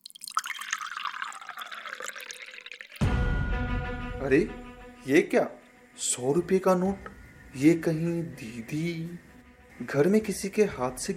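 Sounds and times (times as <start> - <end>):
milk being poured into a vessel: 0.0 - 3.1
speech: 4.2 - 11.1.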